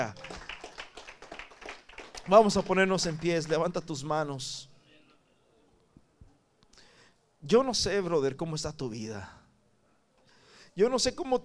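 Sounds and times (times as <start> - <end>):
speech: 0.0 - 0.3, 2.3 - 4.7, 7.4 - 9.4, 10.8 - 11.4
audience applauding: 0.0 - 3.8.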